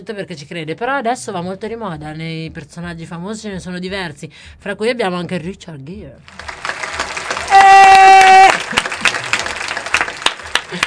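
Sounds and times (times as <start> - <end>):
speech: 0.0 - 6.6
audience applause: 6.3 - 10.8.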